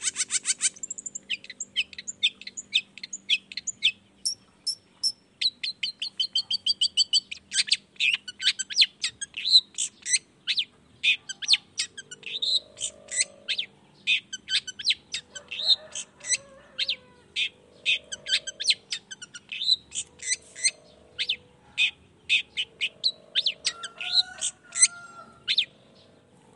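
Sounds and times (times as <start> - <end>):
faint low hum: 0.0 - 26.5
long-tailed shrike song: 0.0 - 26.5.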